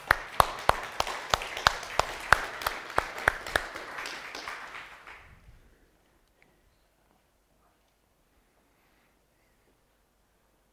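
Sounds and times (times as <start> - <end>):
short audience applause: 0.0 - 5.4.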